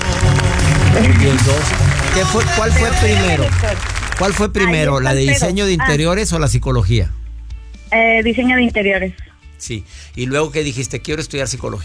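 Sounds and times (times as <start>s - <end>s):
audience applauding: 0.0s - 6.0s
low musical or vocal hum: 0.0s - 10.6s
speech: 1.0s - 7.2s, 7.9s - 11.8s.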